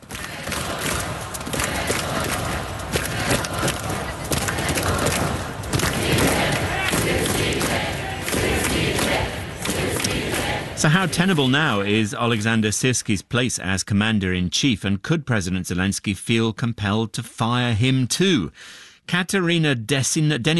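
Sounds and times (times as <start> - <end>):
protest crowd in Ukraine roaring: 0.0 - 11.9
speech: 10.8 - 20.5.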